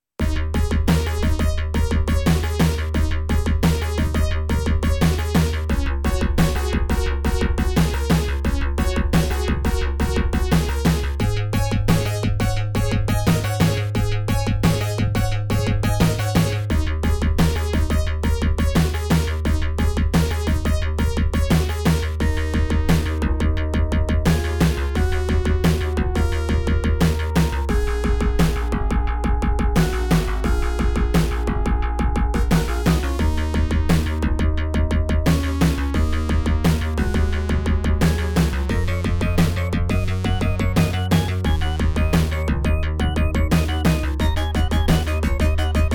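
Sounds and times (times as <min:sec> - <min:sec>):
techno tune: 0:00.2 - 0:45.9.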